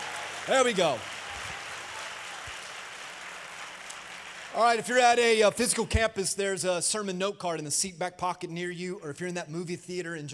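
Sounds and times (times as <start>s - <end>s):
audience applauding: 0.0s - 5.4s
speech: 0.5s - 1.1s, 4.6s - 10.3s.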